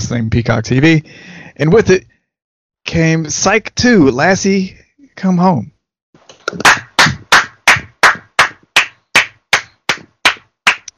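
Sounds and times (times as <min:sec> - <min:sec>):
speech: 0:00.1 - 0:02.1, 0:02.9 - 0:05.7, 0:06.5 - 0:06.7
hand clapping: 0:06.3 - 0:10.9.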